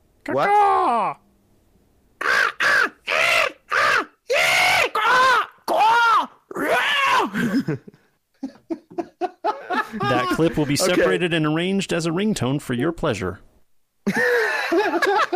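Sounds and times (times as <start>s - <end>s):
speech: 0.2s - 1.2s, 7.7s - 8.0s, 10.0s - 13.5s
person imitating enthusiastic crow cawing: 2.2s - 7.3s
person chuckling: 7.3s - 10.9s, 14.0s - 15.3s.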